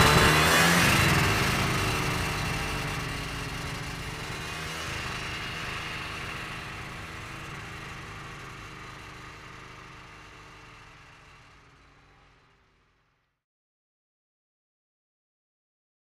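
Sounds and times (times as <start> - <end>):
550cc snowmobile engine idling, revving and driving away: 0.0 - 11.8.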